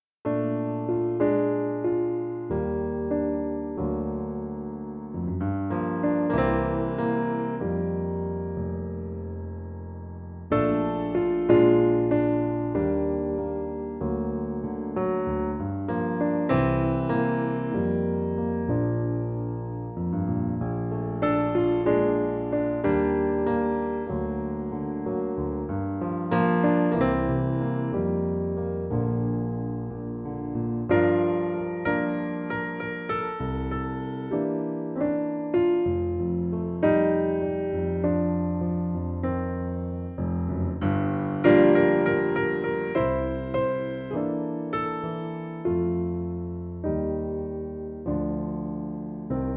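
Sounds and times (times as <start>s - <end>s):
solo piano: 0.0s - 49.5s.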